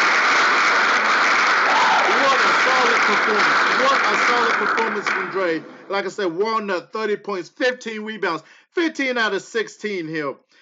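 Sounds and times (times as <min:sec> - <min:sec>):
hand clap sound effect: 0:00.0 - 0:05.8
speech: 0:03.1 - 0:10.5.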